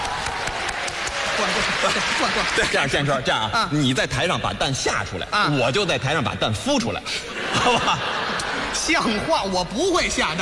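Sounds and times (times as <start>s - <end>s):
audience applause: 0.0s - 2.9s
speech: 1.4s - 10.4s
laughter: 7.1s - 9.5s.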